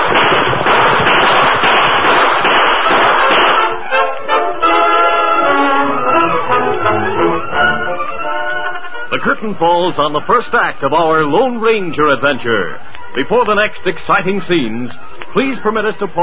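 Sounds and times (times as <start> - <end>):
gunfire volley radio-drama sound effect of riders firing at pursuing outlaws: 0.0 - 4.0
steady tonal sound: 2.4 - 12.0
speech: 9.2 - 16.2.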